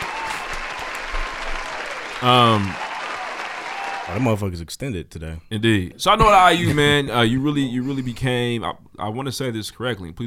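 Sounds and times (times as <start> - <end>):
loud vocal cheer: 0.0 - 4.3
round of applause: 0.0 - 4.4
speech: 2.2 - 2.8, 4.1 - 10.2.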